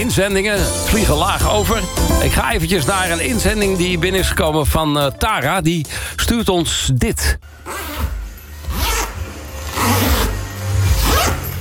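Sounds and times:
speech: 0.0s - 8.0s
school bag zipper opening and closing: 7.5s - 11.5s.

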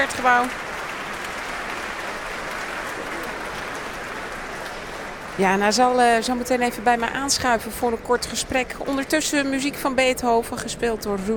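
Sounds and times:
speech: 0.0s - 0.7s, 5.4s - 11.3s
orchestra musicians applauding: 0.0s - 5.4s.

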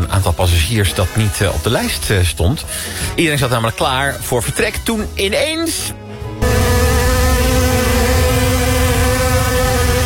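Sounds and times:
speech: 0.4s - 6.0s
swarm of mosquitoes buzzing: 6.4s - 10.0s.

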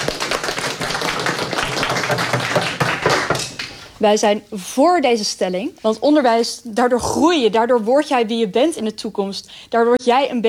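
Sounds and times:
audience applause: 0.0s - 3.4s
speech: 4.0s - 10.4s.

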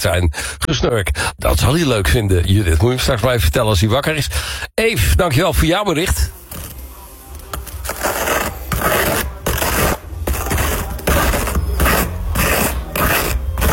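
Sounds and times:
speech: 0.0s - 6.4s
butter spread on a rusk: 6.4s - 13.7s.

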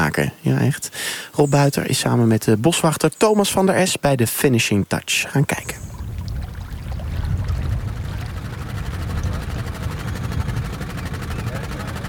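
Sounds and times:
faint hiss: 0.0s - 6.0s
speech: 0.1s - 5.9s
working cranes droning: 5.6s - 12.0s.

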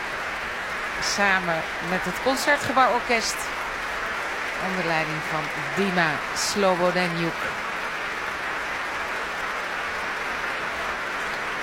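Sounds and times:
large concert audience applause: 0.0s - 11.6s
speech: 1.0s - 3.6s, 4.6s - 7.7s.

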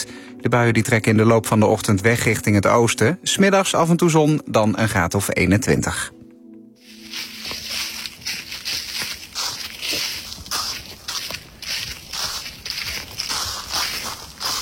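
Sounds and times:
speech: 0.4s - 6.2s
footsteps through thick layer of dry leaves in forest in Garderen: 6.8s - 14.6s.

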